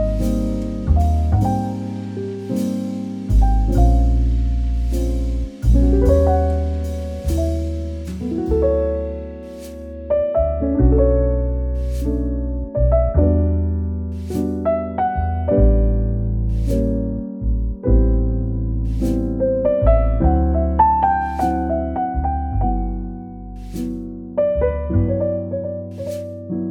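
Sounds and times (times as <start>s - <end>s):
cozy romantic relaxing podcast jazz music: 0.0s - 26.7s.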